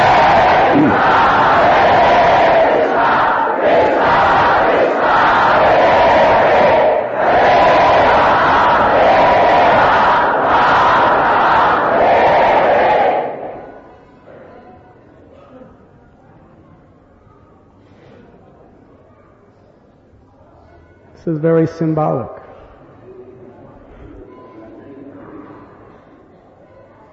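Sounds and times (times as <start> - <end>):
large crowd chanting loudly in unison: 0.0 - 13.9
speech: 21.4 - 22.4.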